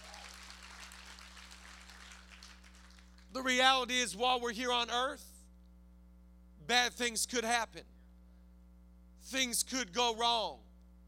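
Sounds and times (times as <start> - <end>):
audience clapping: 0.0 - 3.4
speech: 3.4 - 5.3, 6.7 - 7.9, 9.2 - 10.6.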